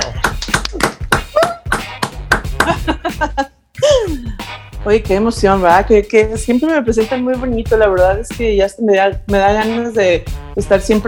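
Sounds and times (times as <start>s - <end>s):
laughter: 0.0s - 1.8s, 2.5s - 4.3s
rhythmic hand claps: 0.0s - 4.7s
speech: 3.2s - 3.5s, 4.8s - 11.0s.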